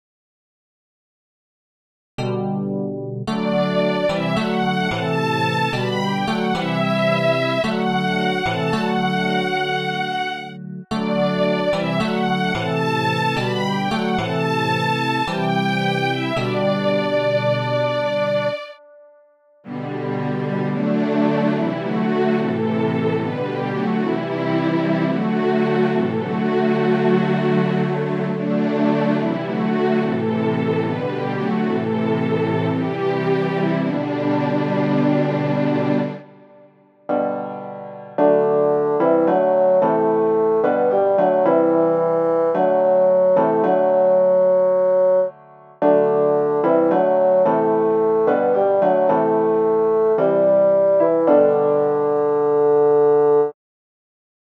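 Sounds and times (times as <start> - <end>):
keyboard: 2.2 - 19.1, 19.7 - 53.6.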